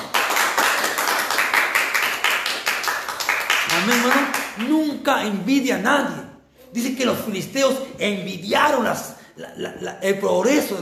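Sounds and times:
people clapping: 0.0s - 4.9s
speech: 3.8s - 10.8s.

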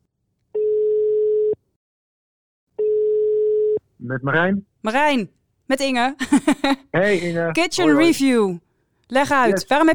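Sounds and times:
telephone ringing tone while placing a call: 0.6s - 1.6s, 2.8s - 3.8s
speech: 4.0s - 9.9s
laughter: 6.2s - 7.3s.

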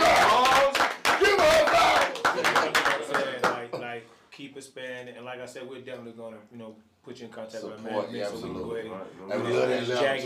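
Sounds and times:
people clapping: 0.0s - 3.8s
speech: 4.4s - 10.2s.

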